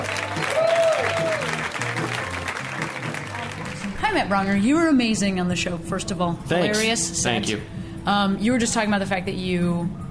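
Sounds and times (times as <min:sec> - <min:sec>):
audience applause for a comedian at a live comedy show: 0:00.0 - 0:04.0
speech: 0:04.2 - 0:10.0.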